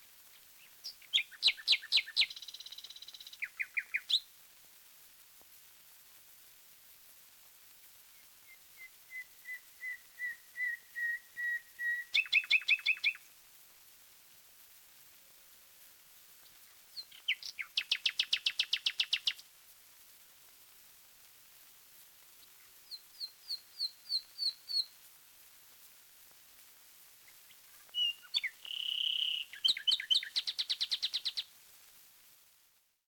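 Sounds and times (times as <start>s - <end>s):
wild nightingale singing: 0.3s - 4.3s, 8.1s - 13.3s, 16.9s - 19.5s, 22.4s - 25.0s, 27.2s - 31.5s.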